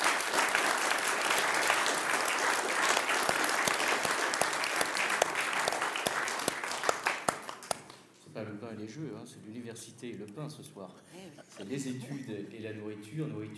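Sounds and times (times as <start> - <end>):
audience applause: 0.0 - 8.0
speech: 8.9 - 13.5.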